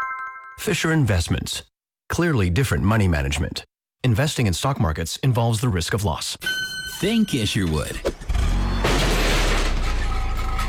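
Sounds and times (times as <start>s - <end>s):
speech: 0.6s - 8.1s
car backing into a garbage can: 8.1s - 10.6s.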